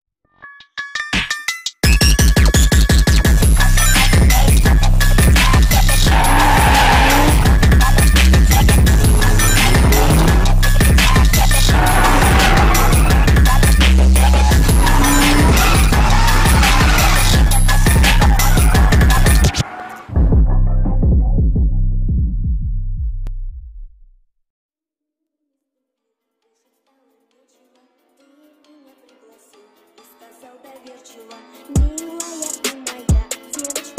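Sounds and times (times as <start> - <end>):
phonk music: 0.5 - 22.5, 31.7 - 33.9.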